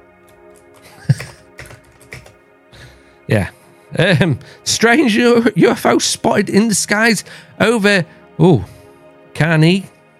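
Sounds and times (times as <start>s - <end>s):
typing on a mechanical keyboard: 0.3s - 2.4s
speech: 3.3s - 8.8s, 9.4s - 9.9s.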